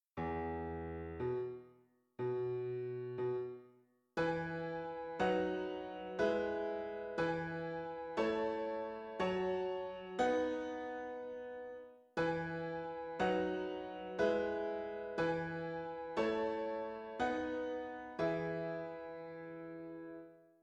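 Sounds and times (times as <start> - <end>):
piano: 0.2 - 20.6.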